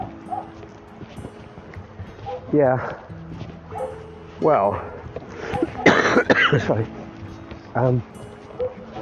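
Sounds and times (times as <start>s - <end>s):
dog barking in the far distance: 0.0s - 0.6s, 2.2s - 2.5s, 3.7s - 4.1s, 4.7s - 6.0s, 8.6s - 8.9s
speech: 2.5s - 3.4s, 4.4s - 4.9s, 6.5s - 7.0s, 7.7s - 8.2s.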